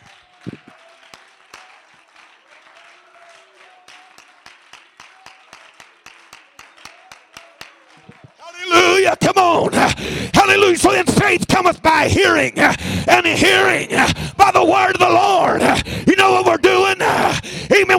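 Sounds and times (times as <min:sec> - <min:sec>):
audience clapping hands: 0:00.0 - 0:11.2
speech: 0:09.0 - 0:17.9.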